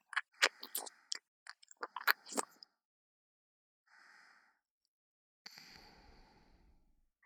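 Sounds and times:
ear licking ASMR on the right: 0.0 - 2.5.

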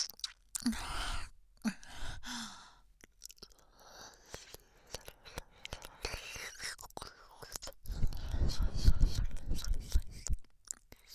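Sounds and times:
close breathing: 0.7 - 6.7, 7.8 - 10.5.

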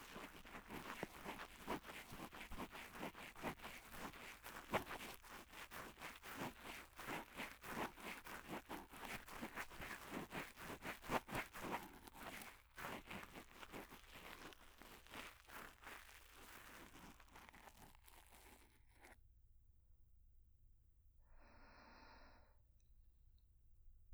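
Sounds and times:
ear cleaning: 0.0 - 19.2.

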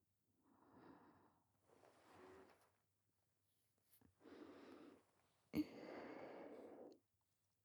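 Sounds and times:
sleep breathing: 0.7 - 2.7, 4.2 - 7.0.

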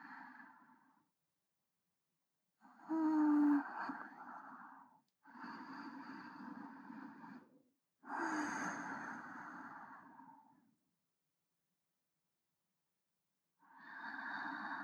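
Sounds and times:
breathing of a person lying alongside, centred: 2.8 - 10.6, 13.6 - 14.8.

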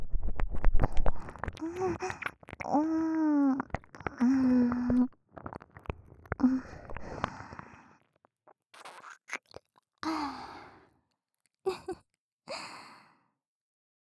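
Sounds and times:
stirring-like ear licking: 0.6 - 7.8, 8.8 - 9.7.

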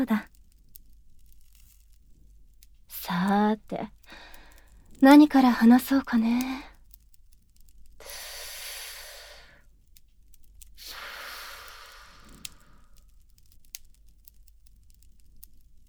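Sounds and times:
speech: 0.0 - 0.3, 3.1 - 4.2, 5.0 - 6.7
faint clicks: 0.0 - 8.2, 9.6 - 15.8
long breathy exhales of sweet-smelling herbal smoke: 8.0 - 9.6, 10.8 - 13.0.

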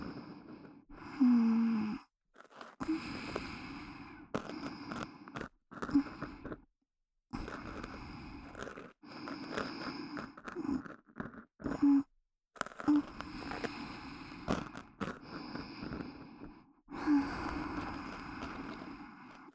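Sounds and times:
ear scratching and ear cleaning in the right ear for sleep: 2.4 - 3.6, 4.2 - 6.6, 7.4 - 16.0, 17.1 - 19.5.

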